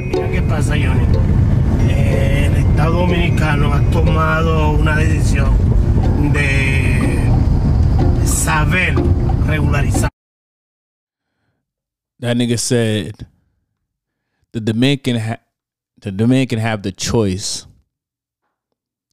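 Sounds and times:
car driving along road: 0:00.0 - 0:10.1
speech: 0:00.2 - 0:07.2, 0:08.2 - 0:10.1, 0:12.2 - 0:13.3, 0:14.5 - 0:15.4, 0:16.0 - 0:17.7.

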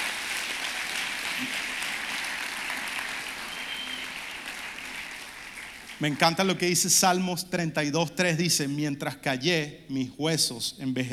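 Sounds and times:
audience applauding: 0:00.0 - 0:06.7
speech: 0:06.0 - 0:11.1.

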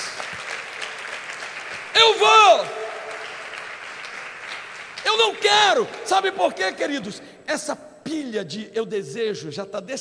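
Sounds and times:
audience applauding: 0:00.0 - 0:06.7
speech: 0:02.0 - 0:02.8, 0:05.2 - 0:09.9.

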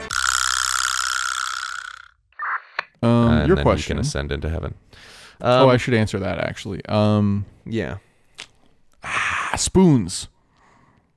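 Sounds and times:
vibraslap percussion instrument rattle: 0:00.0 - 0:02.2
speech: 0:03.4 - 0:08.1, 0:09.6 - 0:10.4.

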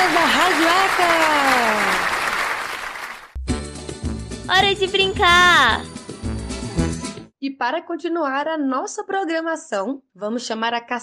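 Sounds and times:
applause: 0:00.0 - 0:03.4
speech: 0:04.6 - 0:05.9, 0:07.4 - 0:11.0.

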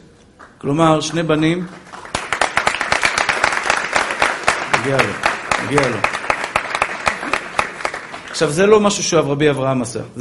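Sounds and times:
speech: 0:00.6 - 0:01.9, 0:04.8 - 0:06.1, 0:08.4 - 0:10.1
audience applause: 0:01.2 - 0:08.9.

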